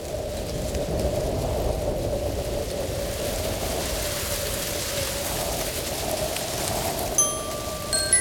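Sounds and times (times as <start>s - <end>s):
wind rushing steadily through trees: 0.0s - 8.1s
brief high chirps: 7.2s - 8.1s.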